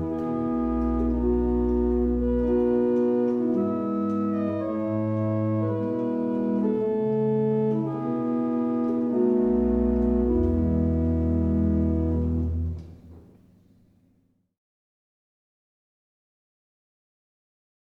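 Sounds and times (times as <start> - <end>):
Irish barrel organ music: 0.0 - 13.2.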